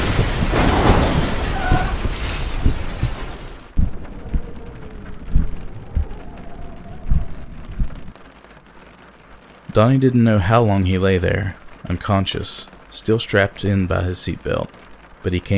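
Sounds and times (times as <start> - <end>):
truck tipping over and crashing: 0.0 - 3.8
heavy low thumps: 0.0 - 8.2
pelting rain: 0.0 - 15.5
speech: 9.8 - 15.5.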